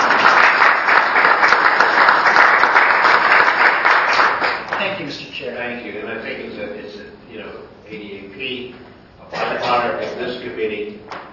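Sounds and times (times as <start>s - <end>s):
applause: 0.0s - 5.0s.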